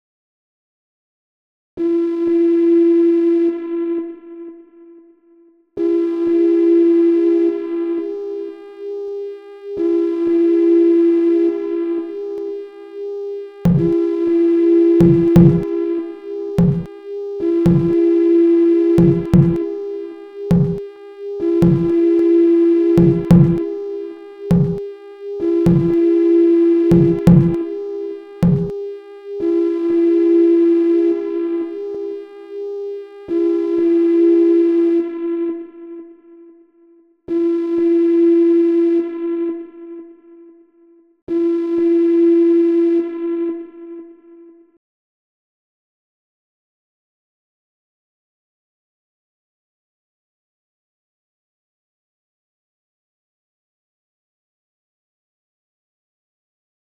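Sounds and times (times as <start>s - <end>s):
sine wave tone: 1.8s - 44.8s.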